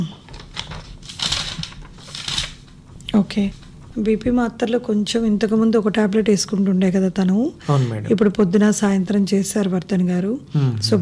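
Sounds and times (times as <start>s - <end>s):
paper sheet from a physician's consultation rustling as handed over: 0.3s - 2.6s
speech: 3.1s - 10.9s.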